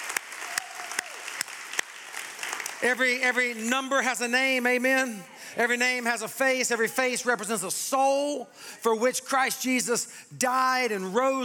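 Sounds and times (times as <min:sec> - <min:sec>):
crowd applauding: 0:00.0 - 0:03.7
speech: 0:02.8 - 0:11.4.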